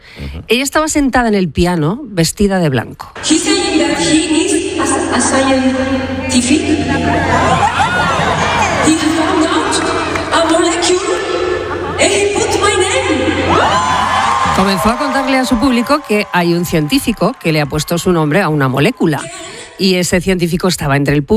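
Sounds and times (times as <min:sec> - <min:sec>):
speech: 0:00.2 - 0:08.1, 0:14.6 - 0:21.3
concert audience roar in Boston: 0:06.1 - 0:12.6, 0:13.2 - 0:19.5
shouts and whoops: 0:06.9 - 0:09.8, 0:13.4 - 0:19.4
laughter: 0:11.4 - 0:12.5.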